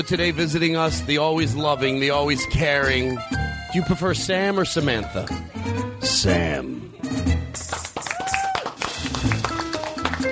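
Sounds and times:
speech: 0.0s - 7.4s
audience clapping: 7.4s - 10.2s
rising whoop: 8.1s - 8.8s.

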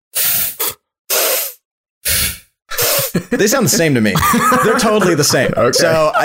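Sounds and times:
person sniffing: 0.1s - 3.2s
laughter: 3.0s - 6.2s
speech: 3.3s - 6.2s.

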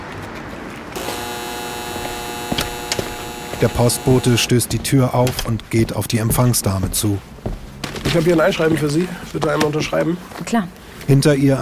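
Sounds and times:
intercom doorbell buzz: 1.0s - 4.7s
speech: 3.6s - 7.3s, 8.1s - 11.5s.

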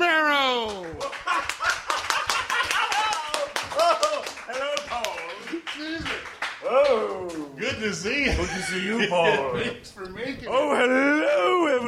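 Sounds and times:
crowd applauding: 0.0s - 8.0s
laughter: 1.0s - 4.2s, 7.8s - 9.9s
speech: 7.8s - 11.3s.

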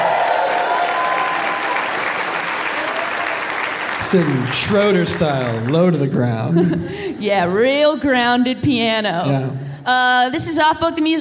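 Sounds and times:
audience applause: 0.0s - 6.5s
laughter: 4.1s - 7.2s
speech: 4.1s - 11.1s.

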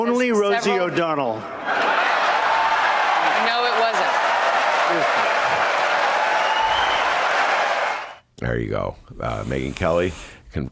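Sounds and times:
speech: 0.0s - 2.0s, 8.4s - 10.7s
audience cheering: 0.5s - 8.2s.

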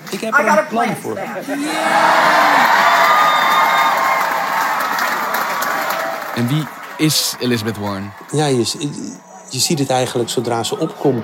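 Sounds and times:
speech: 0.1s - 2.9s, 6.4s - 11.2s
crowd cheering loudly: 1.4s - 11.2s
whoops and shouts: 1.5s - 6.3s.

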